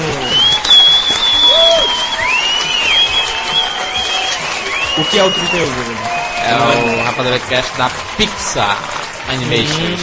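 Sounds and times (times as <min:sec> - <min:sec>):
high whistles: 0:00.0 - 0:07.4
crowd clapping: 0:00.0 - 0:10.0
faint cheering: 0:00.0 - 0:10.0
speech: 0:05.0 - 0:10.0.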